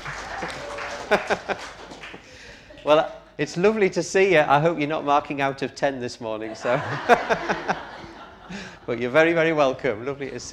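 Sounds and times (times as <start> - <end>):
laughter: 0.0 - 3.0, 6.5 - 9.2
small group clapping: 0.0 - 3.0
speech: 0.4 - 1.8, 2.8 - 7.9, 8.9 - 10.5.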